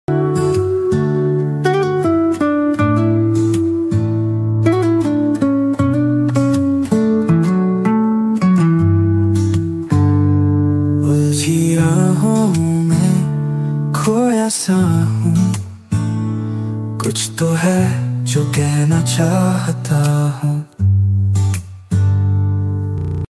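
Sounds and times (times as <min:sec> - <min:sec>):
guitar ringtone: 0:00.1 - 0:10.8, 0:22.9 - 0:23.2
instrumental background music ringtone: 0:00.1 - 0:23.2.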